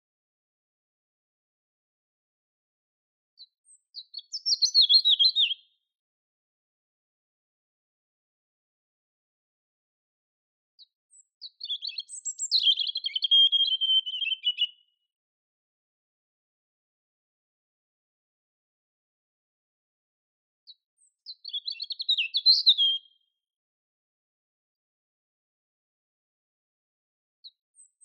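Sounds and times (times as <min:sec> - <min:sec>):
European robin singing: 0:03.4 - 0:05.8, 0:11.1 - 0:14.9, 0:20.7 - 0:23.2.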